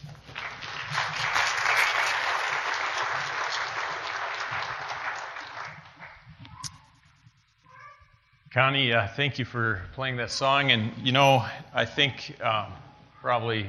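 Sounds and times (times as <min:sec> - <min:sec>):
audience applause welcoming a speaker: 0:00.0 - 0:06.0
speech: 0:08.6 - 0:13.6.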